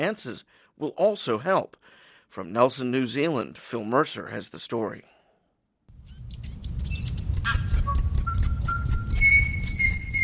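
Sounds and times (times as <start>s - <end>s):
speech: 0.0s - 5.1s, 6.0s - 6.4s
native birds singing: 6.0s - 10.2s.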